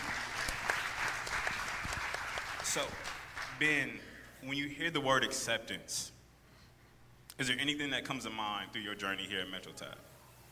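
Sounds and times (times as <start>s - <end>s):
crowd applause: 0.0s - 3.6s
speech: 2.8s - 6.2s, 7.4s - 10.1s.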